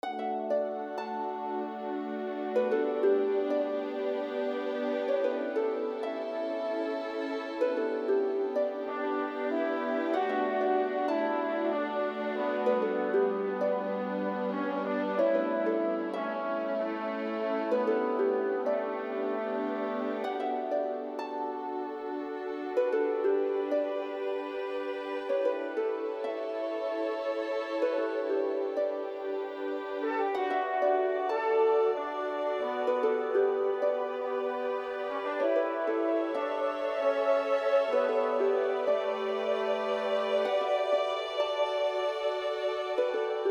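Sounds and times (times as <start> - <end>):
mellow harp music: 0.0 - 43.4.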